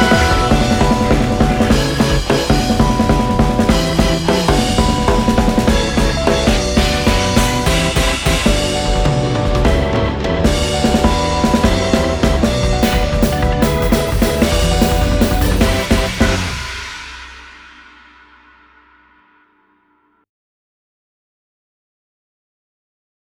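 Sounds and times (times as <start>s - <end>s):
off vocal instrumental music: 0.0s - 17.9s.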